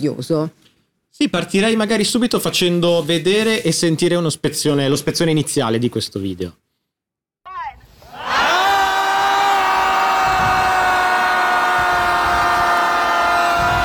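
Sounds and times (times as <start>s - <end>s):
speech: 0.0s - 6.6s
crowd of people screaming: 8.0s - 13.8s.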